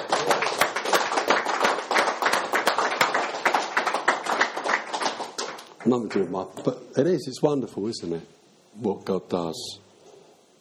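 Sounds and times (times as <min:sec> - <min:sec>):
round of applause: 0:00.0 - 0:06.4
speech: 0:05.8 - 0:09.8.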